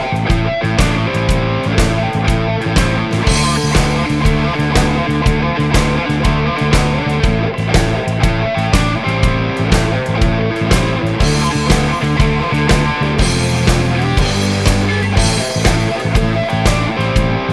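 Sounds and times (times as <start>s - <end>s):
slide backing guitar: 0.1s - 17.5s.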